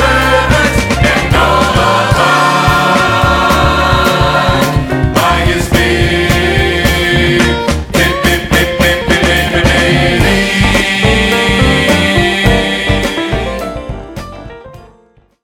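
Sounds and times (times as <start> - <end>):
R&B funk music: 0.0 - 15.1.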